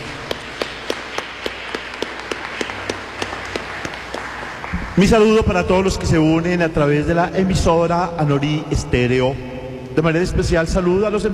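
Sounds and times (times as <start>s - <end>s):
audience applause: 0.0s - 5.4s
speech: 5.0s - 11.3s.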